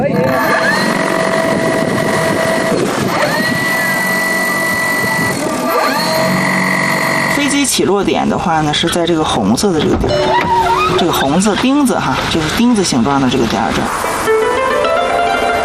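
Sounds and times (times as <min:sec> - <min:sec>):
research drone motors during pre-flight test: 0:00.0 - 0:14.6
speech: 0:07.8 - 0:14.4.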